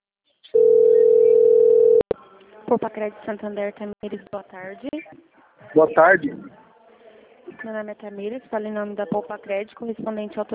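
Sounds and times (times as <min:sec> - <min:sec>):
telephone tone from an incoming call from Santander: 0:00.6 - 0:02.1
speech: 0:02.7 - 0:06.6, 0:07.6 - 0:10.5.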